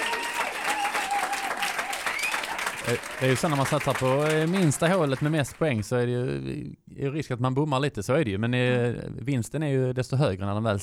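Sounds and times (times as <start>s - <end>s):
applause for a contestant in a company competition game: 0.0s - 6.0s
speech: 2.8s - 10.8s.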